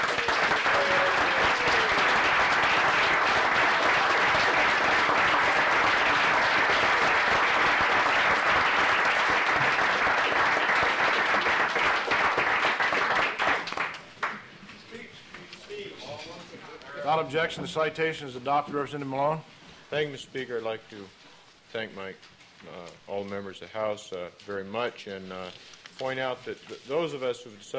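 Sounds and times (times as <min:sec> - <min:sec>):
standing applause from legislators: 0:00.0 - 0:14.5
speech: 0:17.2 - 0:27.7.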